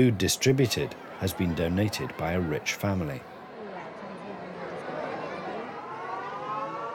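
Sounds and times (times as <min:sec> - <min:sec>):
speech: 0:00.0 - 0:03.3
murmur of a large crowd talking: 0:00.0 - 0:06.9
siren signalling time to break fast: 0:05.9 - 0:06.9.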